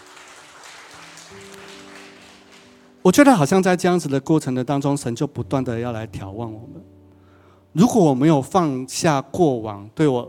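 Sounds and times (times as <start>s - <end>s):
audience applause: 0.0s - 3.0s
soft sustained keyboard chords: 1.0s - 10.2s
speech: 1.3s - 1.8s, 3.0s - 7.0s, 7.7s - 10.2s.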